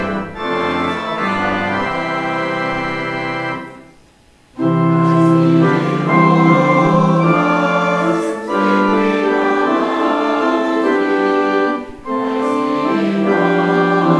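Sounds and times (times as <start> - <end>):
hymn singing: 0.0 - 3.9, 4.6 - 14.1.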